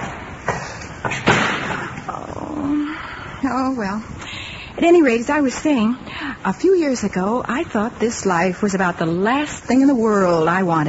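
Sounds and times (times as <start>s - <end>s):
door slamming: 1.0s - 2.0s
speech: 3.4s - 4.2s, 4.8s - 10.8s.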